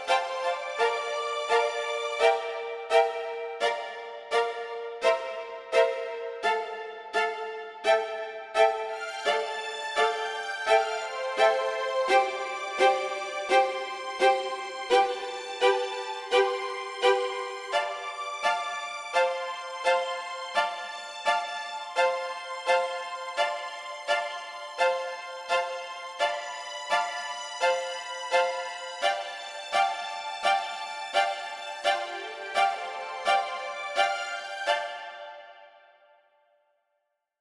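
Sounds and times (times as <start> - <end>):
strings through a reverb unit: 0.0 - 36.2.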